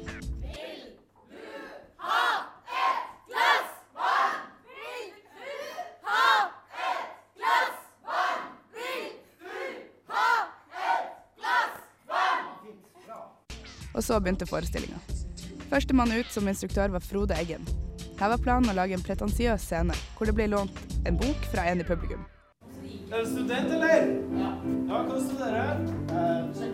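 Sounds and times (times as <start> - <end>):
audience cheering and chanting during warm-up: 0.4 - 13.0
speech: 14.0 - 15.1, 15.7 - 22.3, 23.1 - 26.7.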